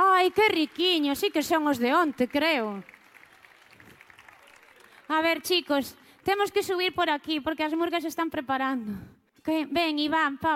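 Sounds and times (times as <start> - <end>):
group clapping: 0.0 - 6.5
speech: 0.2 - 3.0, 5.1 - 10.5.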